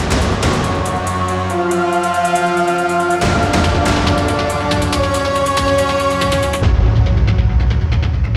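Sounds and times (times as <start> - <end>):
mission complete success cue: 0.1 - 8.2.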